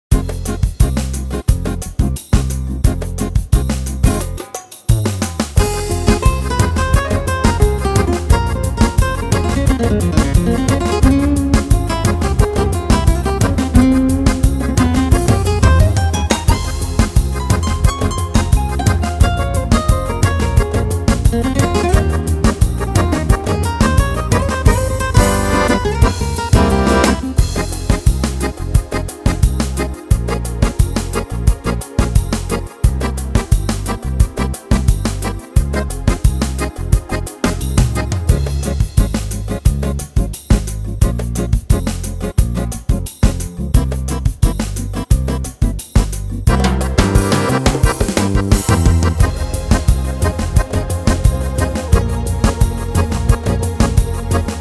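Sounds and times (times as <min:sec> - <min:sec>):
gypsy bossa music: 0:00.1 - 0:54.6.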